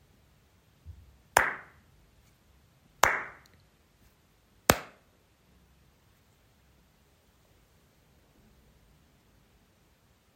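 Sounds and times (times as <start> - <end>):
hand claps: 1.4 - 1.8, 3.0 - 3.6, 4.7 - 5.0.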